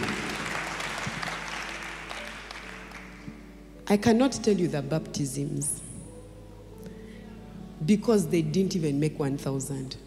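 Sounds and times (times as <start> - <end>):
audience applause: 0.0 - 3.3
speech: 3.9 - 5.8, 7.9 - 10.0.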